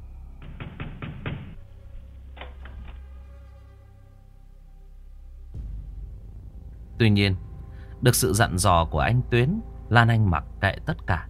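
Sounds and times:
knocking on a wooden door: 0.4s - 1.6s
speech: 7.0s - 11.2s.

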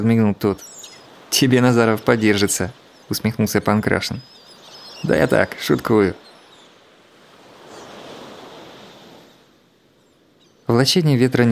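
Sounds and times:
speech: 0.0s - 4.4s, 5.0s - 6.2s, 10.7s - 11.5s
sea waves splashing below a cliff: 0.0s - 11.5s.

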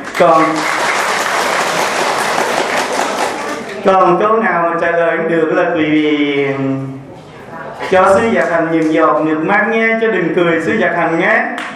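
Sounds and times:
crowd applauding: 0.0s - 3.8s
speech: 0.2s - 0.7s, 3.8s - 7.0s, 7.8s - 11.6s.

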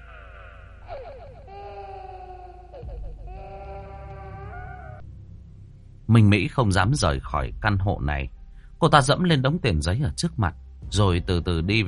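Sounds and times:
baby crying through a wall: 0.0s - 5.0s
speech: 6.1s - 11.8s.

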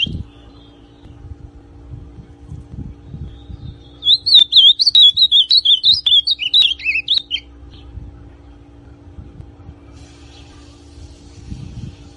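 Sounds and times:
ultramarine grosbeak song: 0.0s - 1.2s, 3.0s - 7.9s.

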